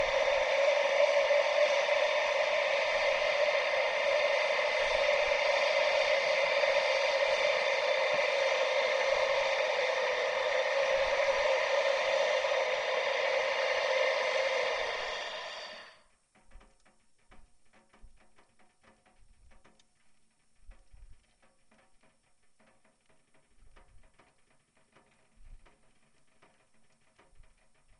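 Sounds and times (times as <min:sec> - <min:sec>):
model steam engine starting and running pitched down three octaves: 0:00.0 - 0:16.0.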